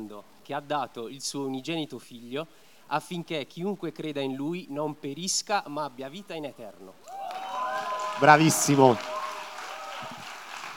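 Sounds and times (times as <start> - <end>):
speech: 0.0 - 7.2, 8.2 - 9.2
audience applauding: 7.1 - 10.7.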